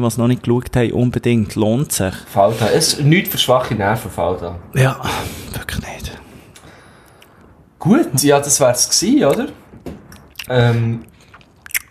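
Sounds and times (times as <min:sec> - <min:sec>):
speech: 0:00.0 - 0:06.2, 0:07.8 - 0:09.6, 0:10.5 - 0:11.1
person chewing while eating: 0:10.2 - 0:10.5, 0:11.1 - 0:11.8.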